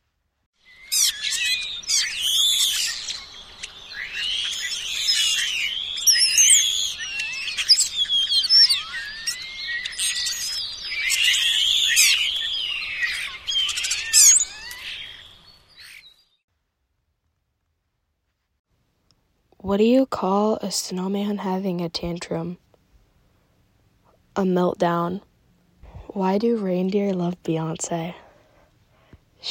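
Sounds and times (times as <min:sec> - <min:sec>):
chattering flock of birds giving discordant squeaky whiny calls: 0:00.6 - 0:16.3
speech: 0:19.7 - 0:22.7, 0:24.4 - 0:25.3, 0:26.2 - 0:28.2.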